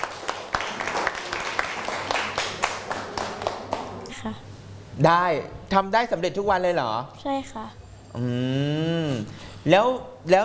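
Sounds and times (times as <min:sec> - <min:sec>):
class of students applauding: 0:00.0 - 0:04.0
speech: 0:04.2 - 0:10.4.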